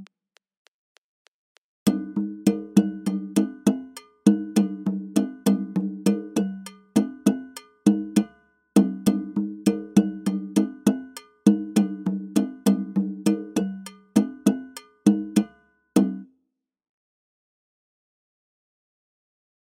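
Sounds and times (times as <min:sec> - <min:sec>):
African music: 0:01.9 - 0:16.2.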